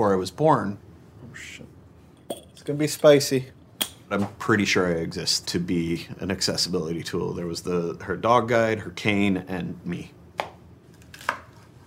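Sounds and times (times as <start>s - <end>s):
speech: 0.0s - 1.7s, 2.6s - 10.2s
knife chopping on a cutting board: 11.2s - 11.6s.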